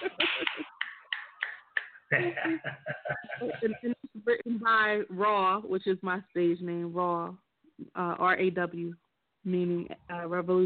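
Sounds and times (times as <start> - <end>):
audience snapping fingers: 0.0 - 2.1
laughter: 0.0 - 4.2
speech: 2.1 - 10.6.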